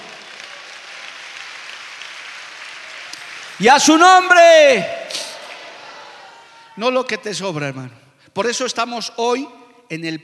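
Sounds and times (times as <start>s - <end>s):
audience applauding: 0.0s - 6.4s
speech: 3.6s - 5.0s, 6.8s - 10.2s.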